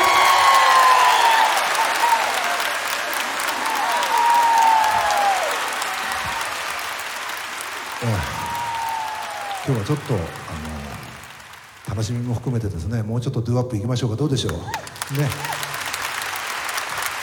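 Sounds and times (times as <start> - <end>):
whistles and cheers: 0.0 - 10.5, 14.7 - 16.4
audience applause: 0.0 - 13.0, 14.4 - 17.2
speech: 9.7 - 10.5, 12.0 - 15.6.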